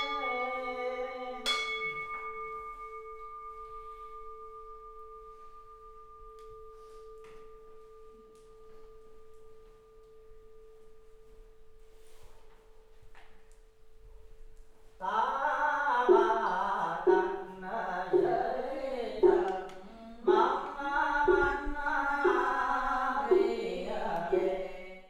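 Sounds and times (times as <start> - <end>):
people praying at a Buddhist temple mass in Marseille: 0.0 - 3.4, 15.0 - 25.0
chanting at a Buddhist temple mass in Marseille: 0.0 - 11.1, 15.0 - 25.0
percussion at a Buddhist temple mass in Marseille: 0.0 - 12.0, 16.1 - 25.0.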